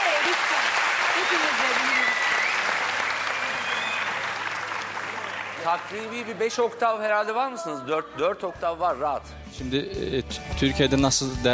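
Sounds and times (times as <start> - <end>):
audience applause: 0.0 - 6.6
speech: 1.3 - 1.9, 5.6 - 11.5
faint voices and whistles: 1.8 - 2.7, 3.4 - 4.2.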